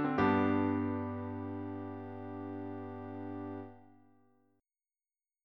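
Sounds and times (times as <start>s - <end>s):
G major chord: 0.2s - 3.9s.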